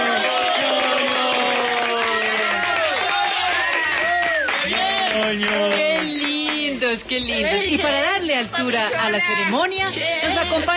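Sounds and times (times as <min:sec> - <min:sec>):
crowd cheering and whooping: 0:00.0 - 0:05.4
audience applause: 0:00.0 - 0:06.7
speech: 0:05.2 - 0:06.3, 0:06.9 - 0:10.7.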